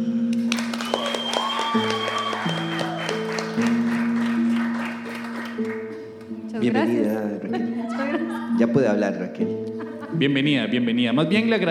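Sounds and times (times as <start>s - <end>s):
audience applause: 0.4s - 6.3s
laughter: 6.8s - 8.8s, 9.7s - 10.7s
speech: 8.7s - 11.6s.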